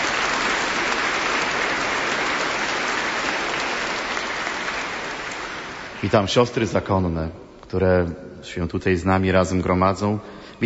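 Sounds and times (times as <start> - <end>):
audience applause: 0.0 - 6.2
speech: 6.0 - 10.6.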